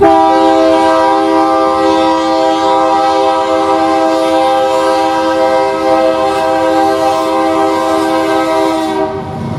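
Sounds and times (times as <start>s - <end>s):
horns: 0.0s - 9.4s.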